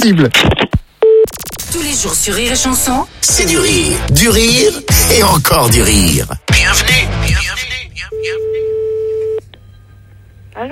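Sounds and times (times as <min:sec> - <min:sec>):
speech: 0:00.0 - 0:00.6, 0:01.7 - 0:08.4, 0:10.6 - 0:10.7
quieter telephone line noise: 0:01.0 - 0:08.5
telephone ringback tone during an outgoing call: 0:08.1 - 0:09.4.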